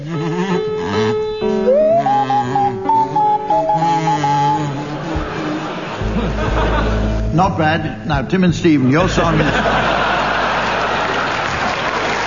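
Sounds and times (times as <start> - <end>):
kazoo playing a carol: 0.0 - 7.3
swanee whistle playing a carol: 1.5 - 5.6
laughter: 4.0 - 7.3, 9.0 - 12.2
speech: 7.4 - 10.0.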